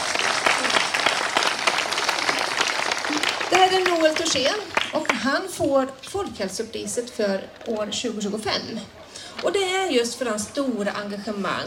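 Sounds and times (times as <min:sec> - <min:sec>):
audience applause: 0:00.0 - 0:05.2
speech: 0:03.7 - 0:11.6.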